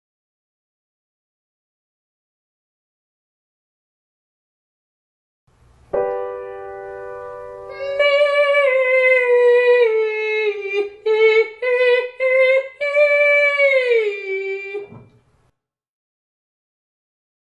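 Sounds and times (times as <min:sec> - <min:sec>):
person singing legato and staccato ascending to high G: 0:07.7 - 0:15.1.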